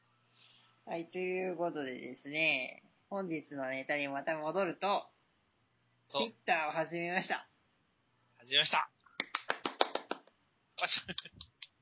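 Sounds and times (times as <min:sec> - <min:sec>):
speech: 0:00.9 - 0:05.1, 0:06.1 - 0:07.5, 0:08.4 - 0:08.9, 0:10.8 - 0:11.5
hand clapping: 0:09.2 - 0:10.4, 0:11.0 - 0:11.8.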